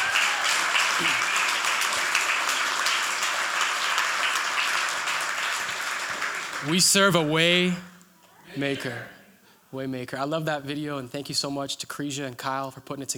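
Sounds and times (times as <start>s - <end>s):
audience clapping hands: 0.0s - 7.4s
speech: 1.0s - 1.2s, 6.6s - 7.9s, 8.6s - 13.1s.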